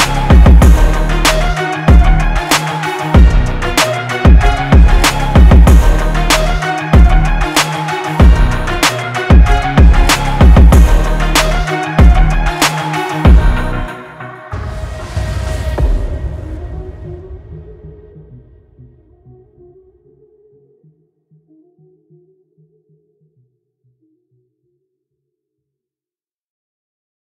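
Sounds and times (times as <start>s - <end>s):
hard motivational rock inspired rap beat: 0.0s - 14.6s.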